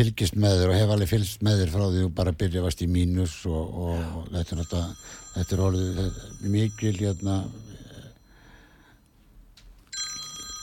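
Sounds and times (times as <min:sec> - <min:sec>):
speech: 0:00.0 - 0:07.7
low noise: 0:00.0 - 0:10.6
telephone ringing during a live broadcast: 0:04.3 - 0:09.2, 0:09.8 - 0:10.6.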